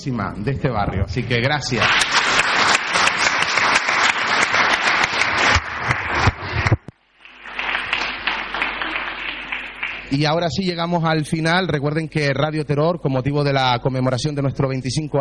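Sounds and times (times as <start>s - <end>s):
speech: 0.0s - 2.3s, 10.1s - 15.1s
audience applause: 1.6s - 10.2s.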